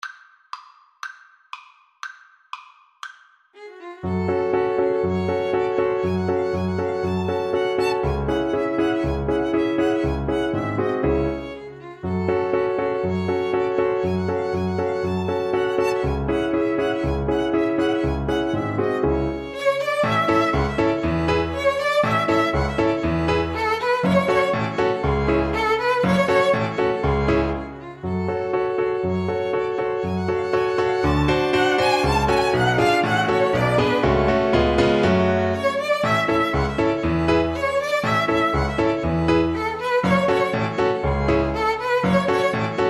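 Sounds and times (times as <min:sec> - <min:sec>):
piano trio: 0:04.0 - 0:42.8.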